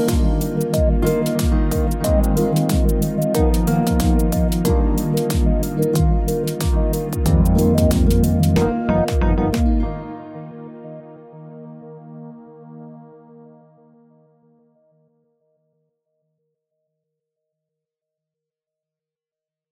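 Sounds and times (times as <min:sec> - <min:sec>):
ballad: 0:00.0 - 0:12.1.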